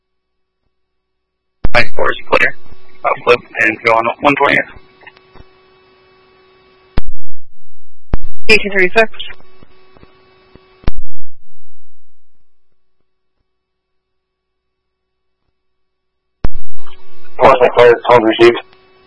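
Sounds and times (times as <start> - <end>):
burst of static: 1.6 - 12.7, 16.4 - 19.0
radio talk: 1.7 - 5.2, 8.5 - 9.6, 16.5 - 18.7
speech: 2.0 - 4.8, 8.5 - 9.4, 17.6 - 18.7
radio click: 18.6 - 18.8.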